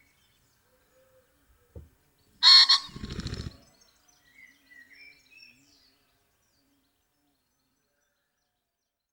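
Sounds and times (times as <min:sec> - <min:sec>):
common pheasant Phasianus colchicus calling in the Weinviertel: 0:01.8 - 0:03.6.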